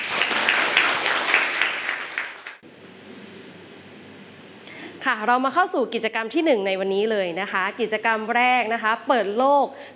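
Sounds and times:
applause for a classmate: 0.0s - 2.6s
speech: 5.0s - 9.9s.

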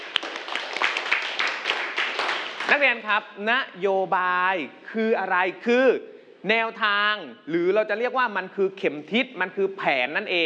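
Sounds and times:
students applauding a classmate in a classroom: 0.0s - 2.8s
speech: 2.7s - 10.4s.

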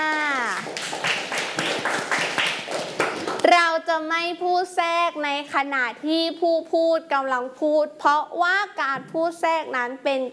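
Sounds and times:
children clapping for a classmate: 0.0s - 3.5s
speech: 4.2s - 10.3s.

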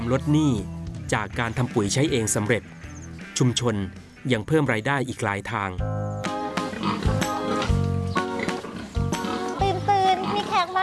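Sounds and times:
speech: 0.1s - 2.8s, 3.4s - 6.0s
pigs grunting and snorting on a farm: 6.5s - 10.8s.

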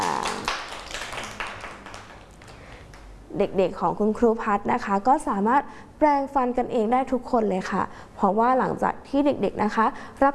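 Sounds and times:
hand clapping applause: 0.0s - 3.1s
speech: 3.3s - 10.3s.

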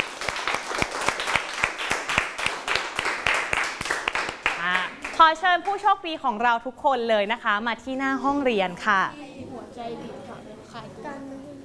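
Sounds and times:
audience clapping for lucky winners: 0.0s - 5.8s
speech: 5.3s - 9.2s, 9.8s - 11.4s.

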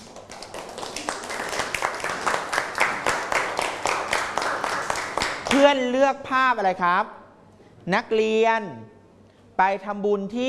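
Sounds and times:
students clapping for classmates: 0.0s - 5.8s
speech: 5.5s - 7.2s, 7.9s - 9.0s, 9.6s - 10.4s.

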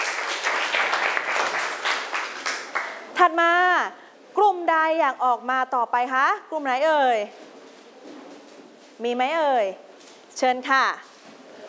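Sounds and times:
students applauding a group: 0.0s - 3.2s
speech: 3.2s - 7.4s, 9.0s - 9.8s, 10.4s - 11.1s.

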